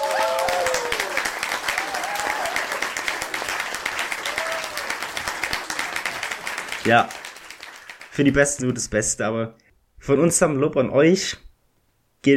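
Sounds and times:
faint whoops: 0:00.0 - 0:02.9, 0:04.2 - 0:05.0
crowd applause: 0:00.0 - 0:08.3
speech: 0:06.8 - 0:07.2, 0:08.2 - 0:11.4.

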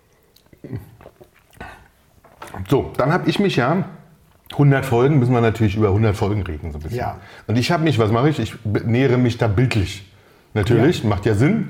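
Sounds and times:
person sipping wine: 0:00.0 - 0:03.0
speech: 0:00.6 - 0:01.8, 0:02.6 - 0:11.6.

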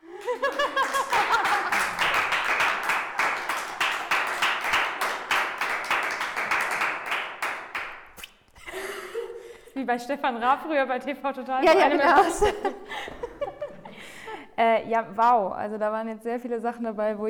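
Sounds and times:
laughter: 0:00.0 - 0:04.1, 0:11.6 - 0:14.4
hand clapping: 0:00.2 - 0:08.4
speech: 0:09.8 - 0:13.2, 0:14.6 - 0:17.2.

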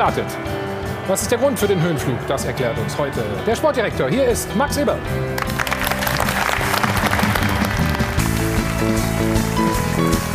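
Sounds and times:
speech: 0:00.0 - 0:05.6, 0:08.8 - 0:10.3
tonal musical backing: 0:00.0 - 0:10.3
audience applause: 0:05.4 - 0:09.8.

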